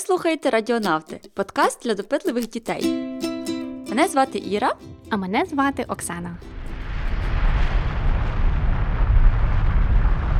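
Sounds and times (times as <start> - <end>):
speech: 0.0 - 3.0, 3.9 - 6.5
volcano rumbling and erupting: 6.3 - 10.3.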